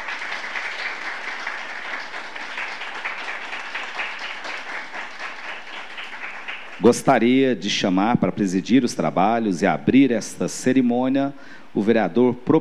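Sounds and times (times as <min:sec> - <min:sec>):
audience applause: 0:00.0 - 0:07.0
speech: 0:06.8 - 0:12.5.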